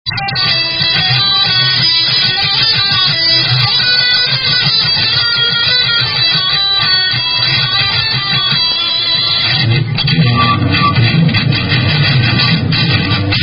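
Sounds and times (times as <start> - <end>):
instrumental music: 0.1 - 13.4.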